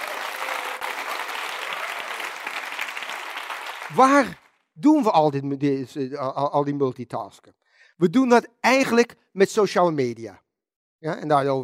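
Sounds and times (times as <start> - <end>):
audience applause: 0.0 - 4.5
speech: 3.9 - 10.4, 11.0 - 11.6.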